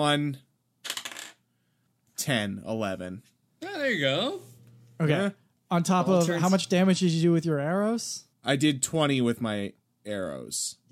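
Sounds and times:
speech: 0.0s - 0.5s, 2.2s - 10.9s
two ten-sided dice rattling across a hard surface: 0.8s - 1.4s.

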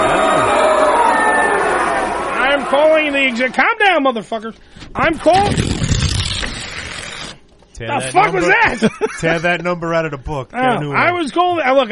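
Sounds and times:
angry crowd: 0.0s - 3.5s
speech: 3.3s - 5.9s, 7.8s - 11.9s
laughter: 8.2s - 9.6s.

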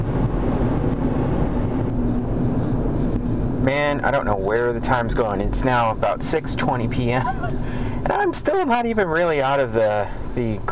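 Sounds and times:
car driving on the road near Sacramento: 0.0s - 10.7s
speech: 3.6s - 10.7s.

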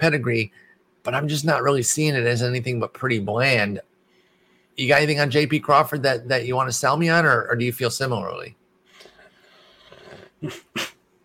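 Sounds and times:
speech: 0.0s - 3.9s, 4.8s - 8.6s, 10.4s - 10.9s
person coughing: 10.0s - 11.0s.

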